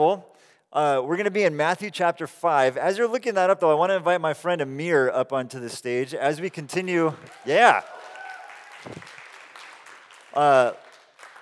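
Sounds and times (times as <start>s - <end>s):
speech: 0.0s - 8.0s, 8.8s - 9.2s, 10.4s - 10.8s
audience clapping: 7.0s - 11.3s.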